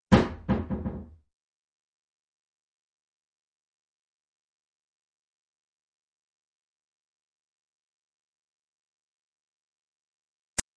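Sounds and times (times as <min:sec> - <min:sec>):
doors: 0:00.1 - 0:01.2.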